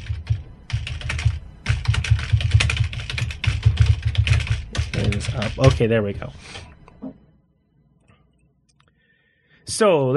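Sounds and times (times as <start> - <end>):
typing on a computer keyboard: 0.0 - 5.8
speech: 5.2 - 6.6, 9.8 - 10.1.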